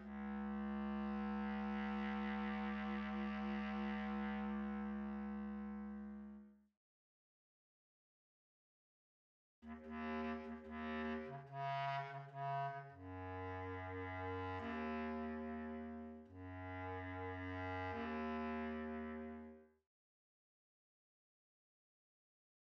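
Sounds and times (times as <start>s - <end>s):
bass clarinet: 0.0s - 6.5s, 9.7s - 19.6s.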